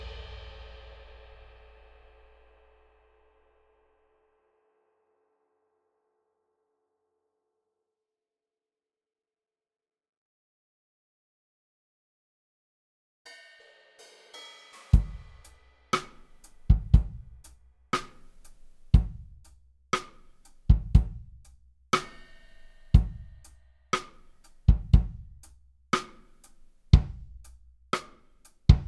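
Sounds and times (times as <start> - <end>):
drums: 0.0 - 3.4, 13.3 - 28.8.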